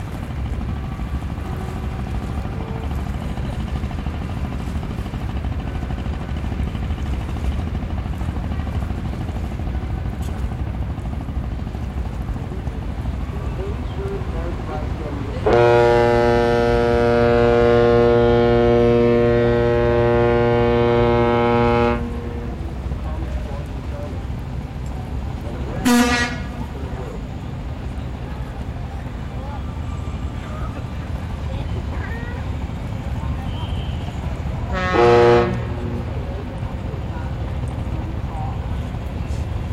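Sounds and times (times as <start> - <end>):
river boat traffic engine rumble: 0.0 - 39.7
long low-pitched boat horn blast: 0.5 - 10.7, 13.0 - 23.5, 25.6 - 27.9, 29.7 - 37.9
brief boat horn toot: 0.8 - 7.0, 15.2 - 23.4, 25.7 - 27.9, 29.7 - 37.8.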